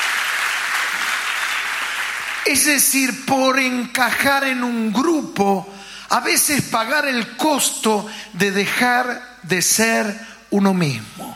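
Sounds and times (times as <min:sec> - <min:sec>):
audience applauding: 0:00.0 - 0:02.8
speech: 0:02.4 - 0:11.3.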